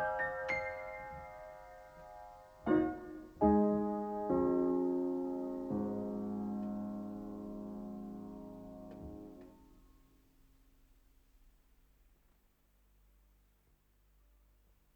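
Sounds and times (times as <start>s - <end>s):
quarter-tone piano suite: 0.0s - 10.0s.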